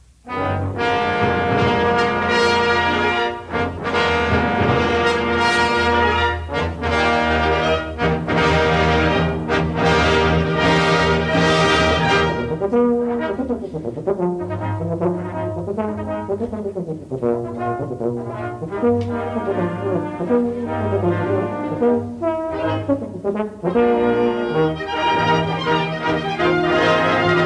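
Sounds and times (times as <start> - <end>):
horn concerto in E-flat: 0.0 - 27.4.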